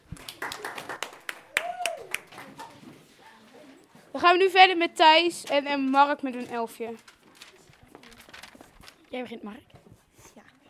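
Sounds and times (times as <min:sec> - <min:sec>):
applause: 0:00.0 - 0:02.8
speech: 0:04.2 - 0:07.1, 0:09.1 - 0:09.8.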